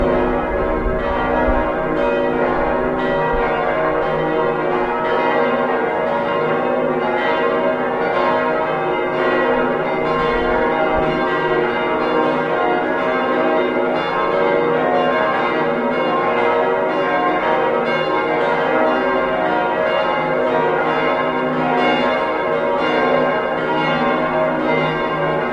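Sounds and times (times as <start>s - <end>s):
organ Plenum 7 bells: 0.0s - 25.5s.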